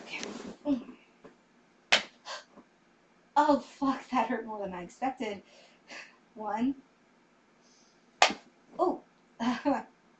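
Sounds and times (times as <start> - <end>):
slap with a hairbrush: 1.9 - 2.2, 8.2 - 8.5
speech: 3.4 - 6.9, 8.8 - 9.9.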